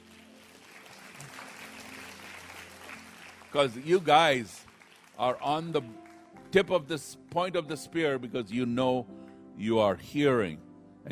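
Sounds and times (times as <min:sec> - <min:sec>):
audience clapping: 0:00.0 - 0:07.8
speech: 0:03.5 - 0:04.6, 0:05.2 - 0:11.1.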